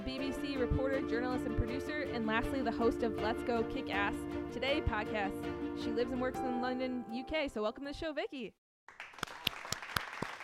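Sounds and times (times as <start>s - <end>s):
speech: 0.1s - 8.6s
applause: 8.9s - 10.4s.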